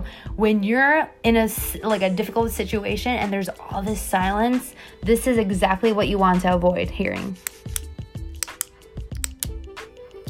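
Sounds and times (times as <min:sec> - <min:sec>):
speech: 0:00.1 - 0:07.8
pen clicking: 0:07.4 - 0:10.1.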